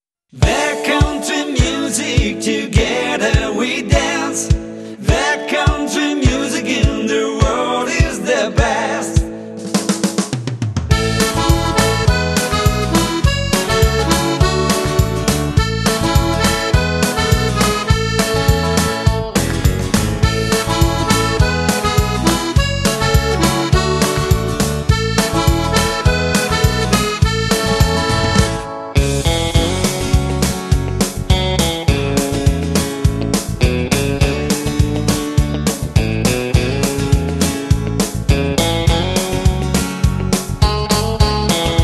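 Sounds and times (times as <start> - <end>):
country music: 0.4 - 41.8.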